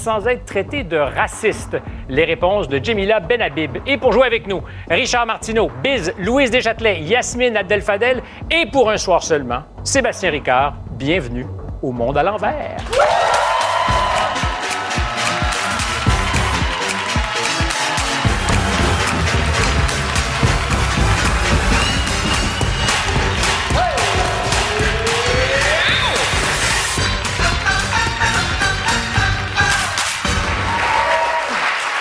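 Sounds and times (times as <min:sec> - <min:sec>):
speech: 0:00.0 - 0:13.3
studio audience cheering and applauding to welcome the host of a Quebec television game show: 0:12.8 - 0:31.9.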